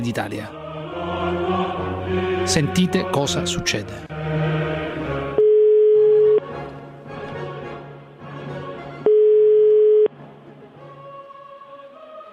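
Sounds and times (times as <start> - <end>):
speech: 0.0 - 4.6
telephone ringing tone of a prank phone call: 5.4 - 6.4, 9.0 - 10.1.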